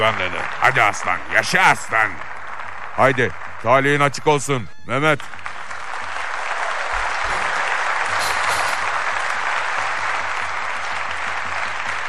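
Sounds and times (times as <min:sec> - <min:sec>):
speech: 0:00.0 - 0:02.3, 0:03.0 - 0:05.4
crowd applauding: 0:00.0 - 0:12.0.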